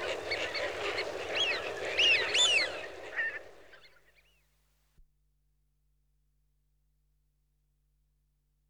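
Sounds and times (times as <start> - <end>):
flock of wigeon Anas penelope: 0.0 - 4.0.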